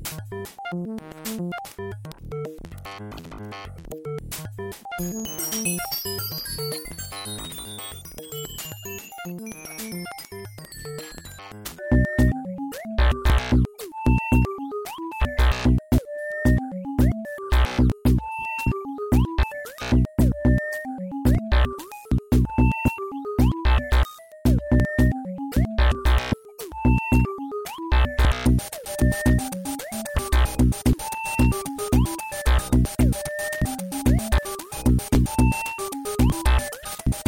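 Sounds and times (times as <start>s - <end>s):
ambient beat: 11.9s - 37.2s.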